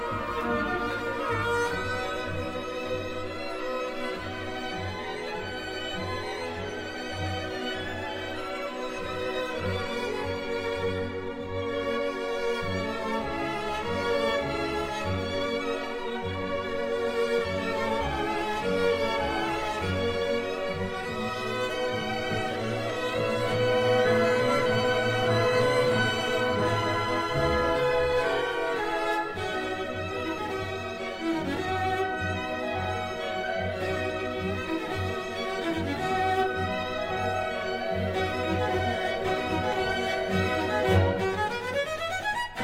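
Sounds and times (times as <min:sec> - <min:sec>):
cello concerto: 0:00.0 - 0:42.6.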